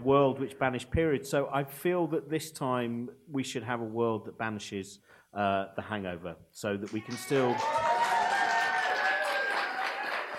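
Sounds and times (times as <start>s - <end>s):
speech: 0.4s - 7.9s
audience clapping: 6.8s - 10.3s
voices cheering and whooping: 6.9s - 10.3s.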